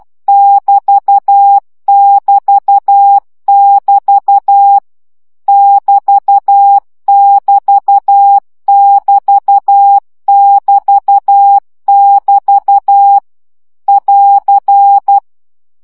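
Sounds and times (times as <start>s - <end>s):
Morse code practice beeps at 10 baud: 0.0s - 4.8s, 5.5s - 13.2s, 13.9s - 15.2s.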